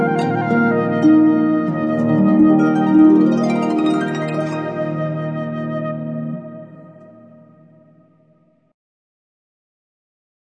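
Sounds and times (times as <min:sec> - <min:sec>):
harp: 0:00.0 - 0:08.0
flute: 0:00.0 - 0:08.4.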